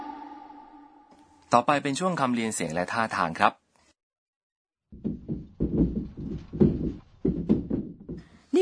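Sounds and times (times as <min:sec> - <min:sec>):
speech: 0:01.5 - 0:03.6
furniture rattling and shaking during an earthquake: 0:04.9 - 0:08.3.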